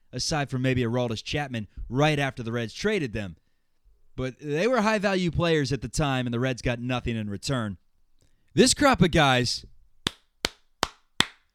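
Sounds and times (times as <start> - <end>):
speech: 0.1 - 3.4, 4.2 - 7.8, 8.5 - 9.7
hands clapping: 10.1 - 11.4.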